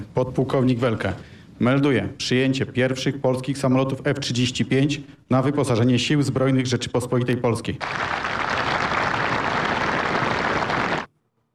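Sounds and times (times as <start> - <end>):
speech: 0.2 - 8.4
applause from a large crowd: 7.8 - 11.1.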